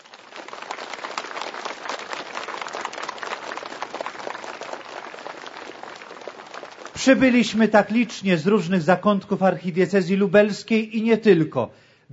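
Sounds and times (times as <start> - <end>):
warm applause from audience: 0.0 - 8.1
speech: 7.0 - 12.1.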